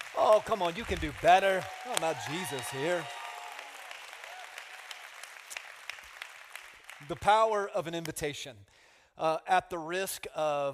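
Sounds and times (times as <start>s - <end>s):
audience applauding: 0.0s - 7.3s
speech: 0.2s - 3.2s, 7.0s - 10.7s.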